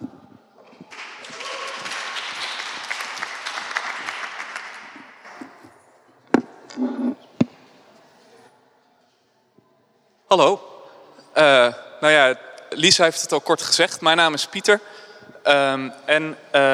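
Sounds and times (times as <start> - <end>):
audience applause: 0.7 - 5.7
speech: 10.3 - 10.7, 11.4 - 16.7.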